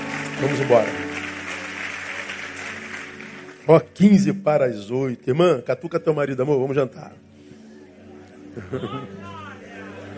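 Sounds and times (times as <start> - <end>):
crowd applause: 0.0 - 4.2
speech: 0.4 - 1.0, 3.7 - 7.3, 8.6 - 9.4
laughter: 8.4 - 10.1.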